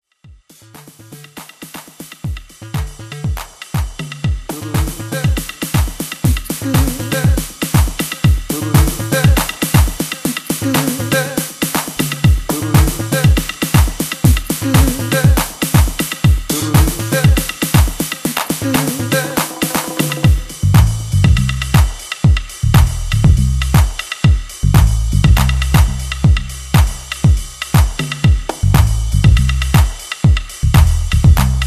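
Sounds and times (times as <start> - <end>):
techno drum roll: 0.3 - 31.6.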